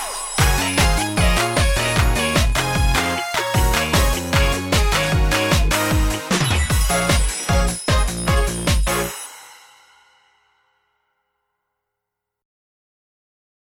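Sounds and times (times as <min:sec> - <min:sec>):
karaoke singing: 0:00.4 - 0:09.1.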